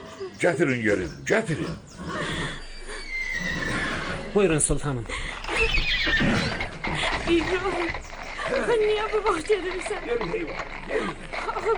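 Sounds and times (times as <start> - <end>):
speech: 0.2 - 2.1, 4.4 - 11.7
horse neighing: 1.6 - 4.7, 5.4 - 11.7.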